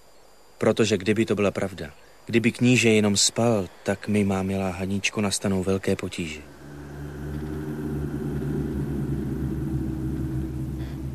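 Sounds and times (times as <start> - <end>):
speech: 0.6 - 6.6
distant thunder rumbling in the mountains: 6.4 - 11.1.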